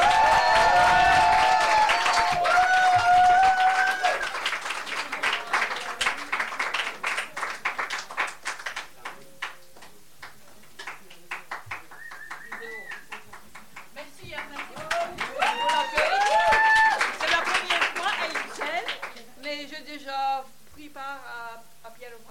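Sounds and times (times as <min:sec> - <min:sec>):
cheering and whoops: 0:00.0 - 0:04.4, 0:14.8 - 0:17.2
audience applause: 0:00.0 - 0:19.3.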